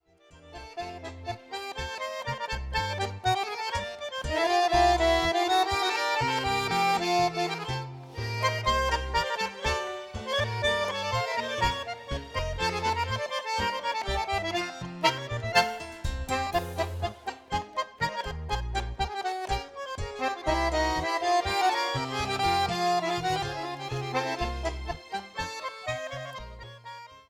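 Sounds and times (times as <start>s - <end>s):
tango music: 0.0s - 27.2s.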